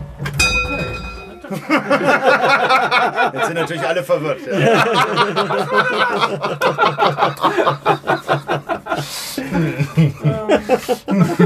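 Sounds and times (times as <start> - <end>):
clock bell striking the full hour: 0.3 - 1.7
laughter: 1.4 - 11.4
speech: 1.5 - 11.4.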